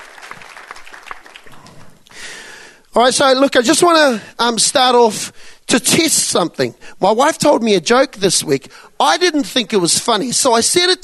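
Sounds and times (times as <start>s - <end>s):
church congregation applauding: 0.0s - 2.2s
speech: 3.0s - 11.0s.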